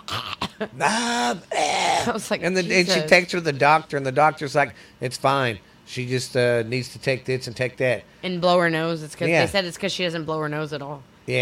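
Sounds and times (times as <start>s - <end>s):
voice imitating a child's cough: 0.0s - 3.0s
speech: 0.6s - 11.4s.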